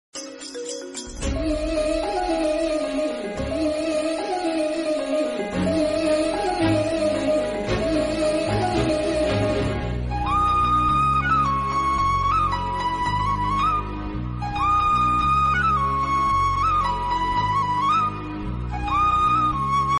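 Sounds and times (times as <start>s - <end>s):
Telugu love background music ringtone: 0.2s - 19.9s.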